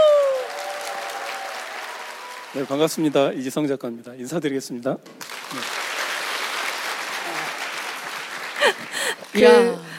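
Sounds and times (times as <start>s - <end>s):
audience applause: 0.0s - 3.4s, 5.2s - 9.4s
speech: 2.5s - 5.8s, 9.3s - 9.9s.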